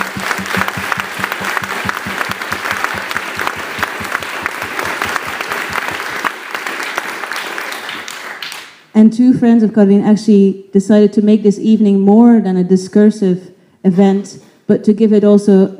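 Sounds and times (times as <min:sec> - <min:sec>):
audience applause: 0:00.0 - 0:08.7
speech: 0:09.0 - 0:15.7.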